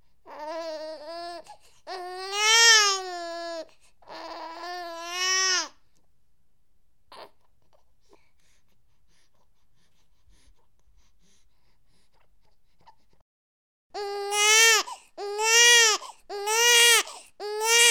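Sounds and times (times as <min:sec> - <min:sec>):
newborn baby crying: 0:00.2 - 0:05.8, 0:07.1 - 0:07.5, 0:14.0 - 0:17.8.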